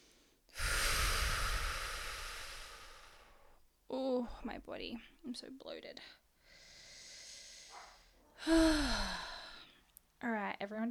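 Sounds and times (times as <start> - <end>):
deep breath: 0.0 - 3.6, 6.4 - 9.9
speech: 4.2 - 6.2, 8.4 - 9.3, 10.2 - 10.9.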